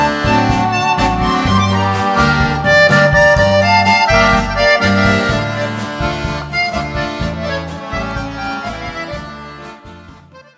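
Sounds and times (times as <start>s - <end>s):
world music band playing: 0.0s - 10.5s.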